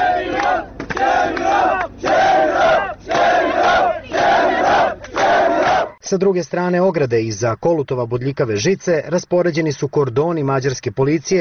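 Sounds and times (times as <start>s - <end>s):
protest crowd chanting at the Hungarian border fence: 0.0s - 6.0s
speech: 6.1s - 11.3s.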